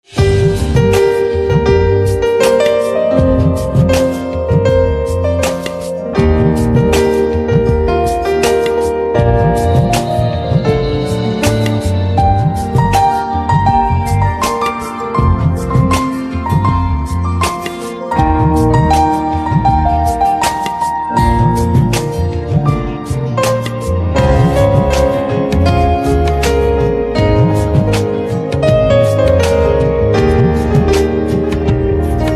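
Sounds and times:
instrumental piano ringtone: 0:00.2 - 0:32.3.

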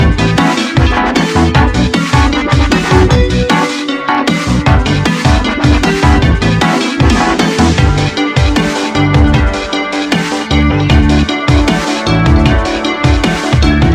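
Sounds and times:
dubstep role play game music: 0:00.0 - 0:13.9.

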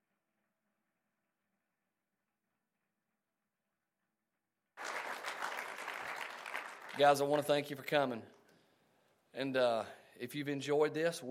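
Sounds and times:
crowd applause: 0:04.8 - 0:08.0
speech: 0:07.0 - 0:08.4, 0:09.4 - 0:11.2.

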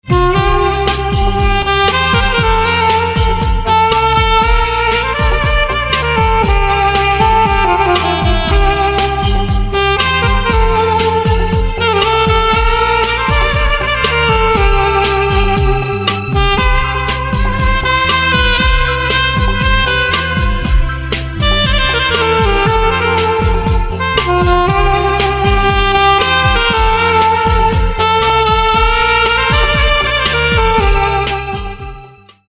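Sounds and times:
saxophone: 0:00.0 - 0:32.5.

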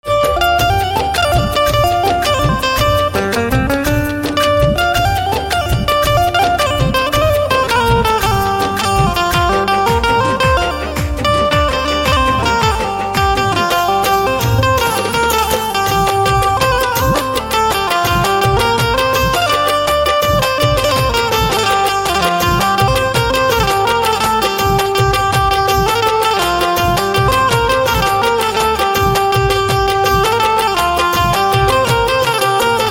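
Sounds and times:
banjo: 0:00.0 - 0:32.8.

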